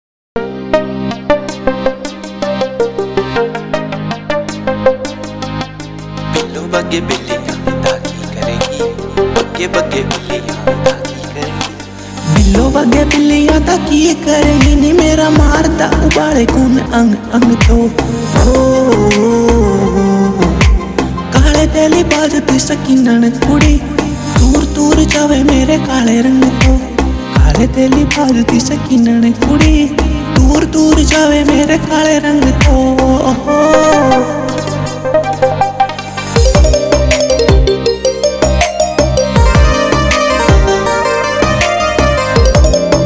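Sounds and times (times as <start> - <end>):
remix song: 0.4 - 43.0.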